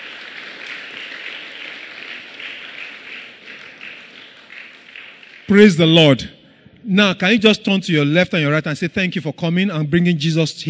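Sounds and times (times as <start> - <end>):
crowd applauding: 0.0 - 5.9
speech: 5.5 - 10.6.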